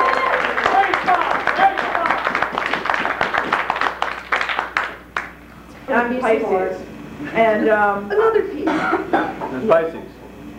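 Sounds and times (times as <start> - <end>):
audience clapping for a performer at a live comedy show: 0.0 - 5.4
speech: 6.0 - 10.1
laughter: 7.2 - 10.4.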